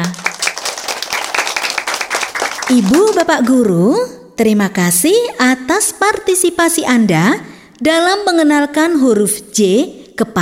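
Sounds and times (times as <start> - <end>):
applause for children during a lesson: 0.0 - 3.6
speech: 2.7 - 10.4.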